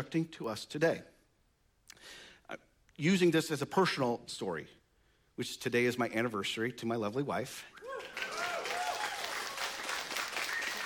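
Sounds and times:
speech: 0.0 - 1.1, 2.0 - 4.8, 5.4 - 8.2
audience applause: 7.8 - 10.8.

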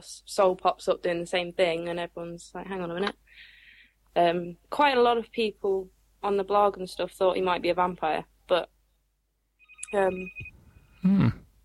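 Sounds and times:
speech: 0.0 - 3.5, 4.2 - 8.8, 9.9 - 11.4
mobile phone ringing: 9.6 - 10.6.

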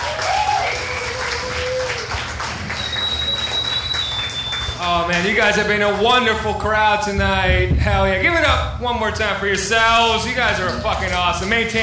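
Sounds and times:
crowd applauding and cheering: 0.0 - 6.5, 10.3 - 11.8
faint whistles: 0.6 - 1.2, 2.6 - 4.9
speech: 5.0 - 11.8.

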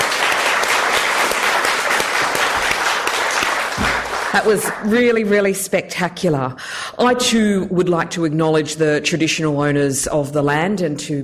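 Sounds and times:
audience applause after a World AIDS Day speech: 0.0 - 4.9
speech: 4.4 - 11.2.

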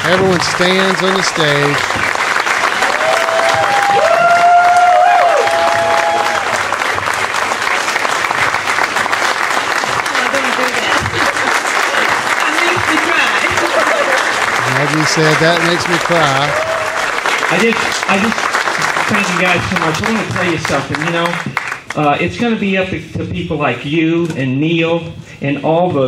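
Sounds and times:
crowd cheering wildly: 0.0 - 21.7
speech: 0.1 - 2.1, 14.9 - 16.7, 17.5 - 18.5, 19.1 - 26.0
laughter: 9.8 - 16.6.

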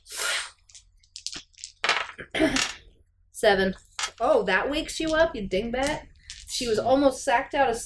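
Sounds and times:
dice rattling: 0.6 - 2.8, 4.8 - 6.8
speech: 3.4 - 7.8.

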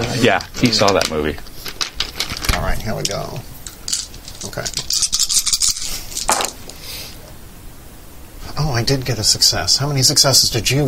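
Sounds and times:
speech: 0.2 - 1.5, 2.7 - 3.5, 4.5 - 5.1, 8.6 - 10.8
dice rattling and clattering down: 0.8 - 6.8.

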